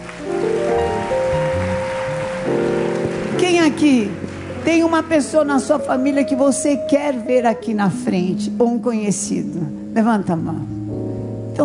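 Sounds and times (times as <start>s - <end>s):
crowd applauding: 0.0s - 5.8s
sustained keyboard or organ tones: 0.0s - 11.6s
speech: 3.7s - 10.8s.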